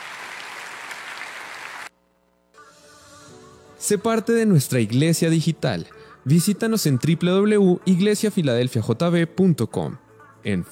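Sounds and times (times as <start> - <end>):
audience applause: 0.0 - 1.9
speech: 3.8 - 10.7.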